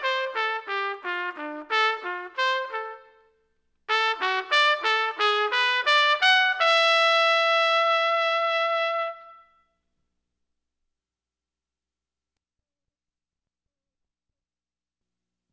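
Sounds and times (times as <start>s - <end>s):
trumpet: 0.0s - 9.7s.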